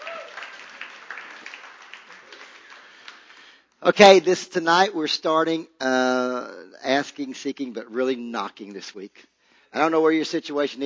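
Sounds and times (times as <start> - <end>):
audience applause: 0.0 - 3.6
speech: 3.8 - 10.8.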